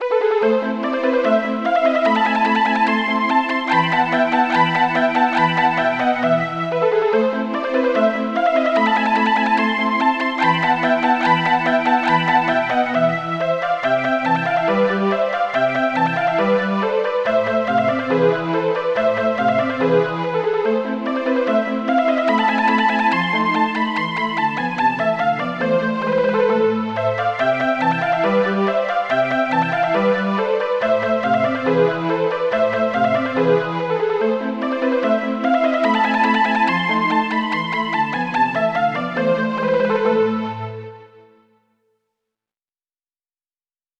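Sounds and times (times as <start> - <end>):
polyphonic synthesizer: 0.0 - 41.5.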